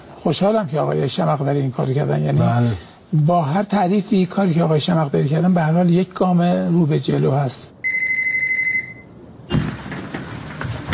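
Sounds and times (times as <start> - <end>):
speech: 0.2 - 7.8
telephone ringing with electronic tone: 7.8 - 9.2
loud rustling and clattering noise: 9.5 - 10.9.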